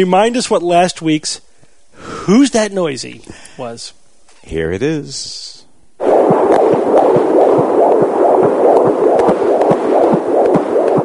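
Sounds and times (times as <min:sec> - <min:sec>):
speech: 0:00.0 - 0:05.6
fetal heartbeat on a Doppler heart monitor during pregnancy: 0:06.0 - 0:11.0.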